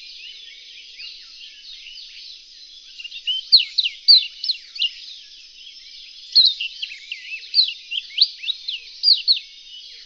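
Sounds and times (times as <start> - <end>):
Reunion olive white-eye high chirping song: 0.0 - 5.1, 5.7 - 10.0.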